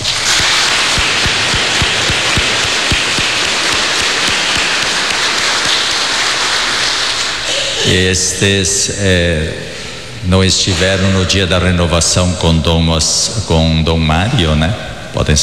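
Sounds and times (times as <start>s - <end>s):
audience applause: 0.0s - 7.7s
speech: 7.9s - 9.6s, 10.2s - 15.4s.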